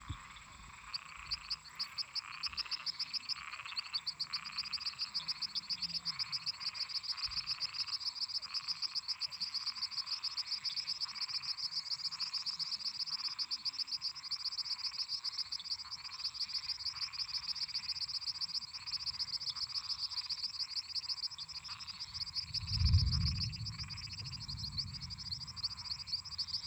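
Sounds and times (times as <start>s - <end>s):
toad chorus croaking at night: 0.0s - 26.6s.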